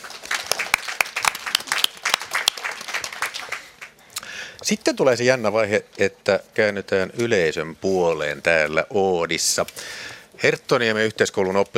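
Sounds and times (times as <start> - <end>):
small round of applause: 0.0 - 4.1
speech: 4.6 - 11.7.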